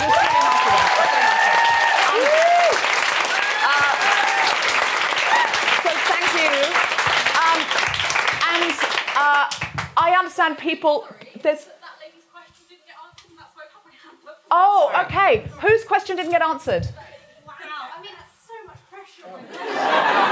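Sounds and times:
audience applause: 0:00.0 - 0:09.8
speech: 0:10.4 - 0:11.8, 0:14.5 - 0:17.0
laughter: 0:19.3 - 0:20.3.

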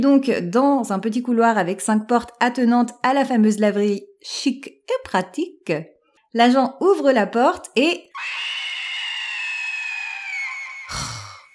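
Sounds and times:
speech: 0:00.0 - 0:08.5
person screaming: 0:08.1 - 0:11.5.

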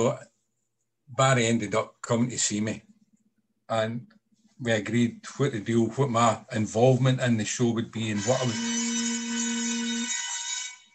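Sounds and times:
speech: 0:00.0 - 0:00.3, 0:01.1 - 0:02.9, 0:03.7 - 0:08.8
mobile phone ringtone: 0:08.5 - 0:10.9.

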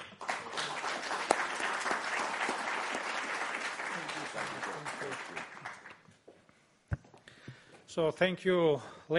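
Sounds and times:
audience applause welcoming Georgia's Minister of Defense: 0:00.0 - 0:06.0
speech: 0:08.0 - 0:09.1.

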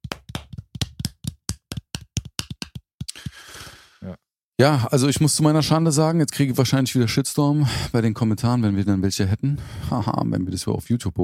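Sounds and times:
hands clapping in applause: 0:00.0 - 0:03.6
speech: 0:04.0 - 0:11.2.

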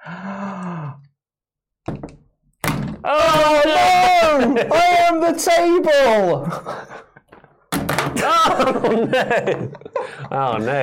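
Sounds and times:
wrestler groaning: 0:00.0 - 0:01.1
speech: 0:03.1 - 0:03.8, 0:04.4 - 0:07.0, 0:08.2 - 0:10.8
laughter: 0:04.2 - 0:05.1, 0:06.4 - 0:07.5, 0:08.2 - 0:10.8.

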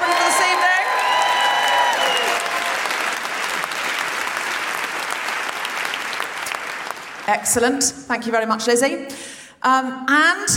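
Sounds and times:
audience applause: 0:00.0 - 0:07.3
speech: 0:07.3 - 0:10.5.

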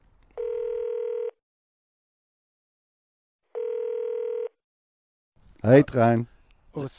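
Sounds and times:
telephone ringing tone: 0:00.4 - 0:01.4, 0:03.5 - 0:04.6
speech: 0:05.6 - 0:06.9.

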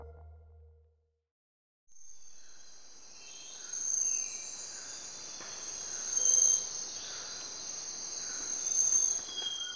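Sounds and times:
crickets chirping in a tropical forest in Ecuador: 0:02.0 - 0:09.7.

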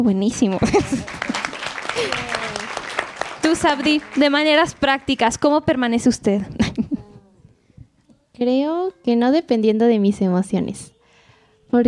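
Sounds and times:
speech: 0:00.0 - 0:01.3, 0:03.5 - 0:06.9, 0:08.4 - 0:11.0
laughter: 0:00.5 - 0:03.2
audience applause: 0:00.6 - 0:05.1.

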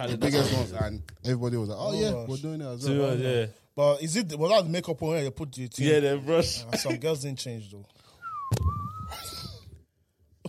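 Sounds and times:
speech: 0:00.0 - 0:08.6
people whistling: 0:08.1 - 0:09.6.

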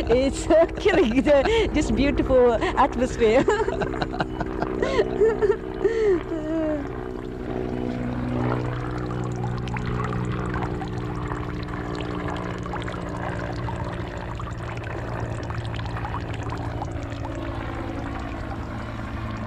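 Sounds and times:
laughter: 0:00.0 - 0:06.7
low droning aircraft hum: 0:00.0 - 0:19.4
water trickling in Japanese garden fountain: 0:00.0 - 0:19.4
speech: 0:00.1 - 0:04.2, 0:05.1 - 0:06.0.

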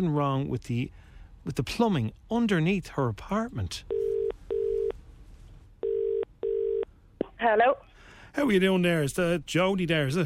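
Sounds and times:
speech: 0:00.0 - 0:04.2, 0:07.4 - 0:10.2
telephone ringback tone in paired bursts: 0:03.9 - 0:04.9, 0:05.8 - 0:06.9.

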